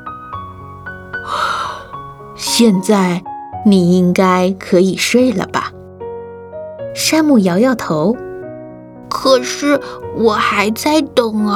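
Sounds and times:
speech: 0:01.2 - 0:01.5, 0:02.4 - 0:05.8, 0:07.0 - 0:08.2, 0:09.2 - 0:11.5
yawn: 0:01.3 - 0:02.0.

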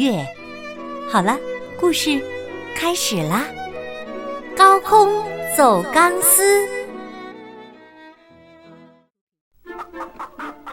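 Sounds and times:
speech: 0:00.0 - 0:00.4, 0:01.1 - 0:03.6, 0:04.6 - 0:06.8
hen clucking: 0:09.6 - 0:10.7.

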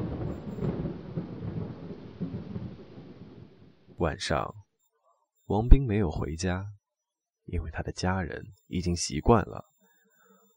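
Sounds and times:
thunder rumbling: 0:00.0 - 0:04.2
speech: 0:04.0 - 0:04.6, 0:05.5 - 0:06.8, 0:07.5 - 0:09.7.

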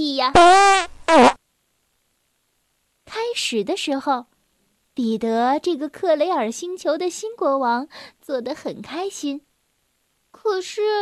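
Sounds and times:
speech: 0:00.0 - 0:01.3, 0:03.3 - 0:04.3, 0:05.0 - 0:09.5, 0:10.3 - 0:11.0
fart: 0:00.4 - 0:01.4.

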